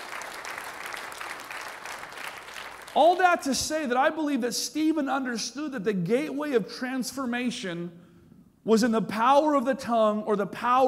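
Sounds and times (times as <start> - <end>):
church congregation applause: 0.0 - 3.6
speech: 2.9 - 8.0, 8.6 - 10.8.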